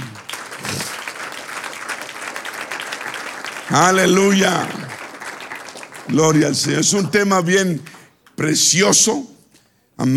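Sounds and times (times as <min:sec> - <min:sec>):
audience applauding: 0:00.0 - 0:08.1
speech: 0:03.7 - 0:04.8, 0:06.1 - 0:09.3, 0:10.0 - 0:10.1.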